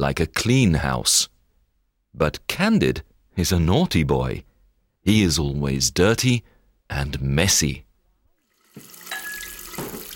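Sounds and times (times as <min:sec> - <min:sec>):
speech: 0:00.0 - 0:01.3, 0:02.1 - 0:07.8
tap water running for hand washing: 0:08.4 - 0:10.1.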